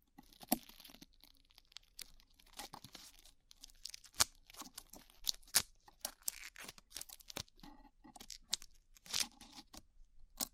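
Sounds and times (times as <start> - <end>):
glue peeling off ears: 0.3 - 10.4.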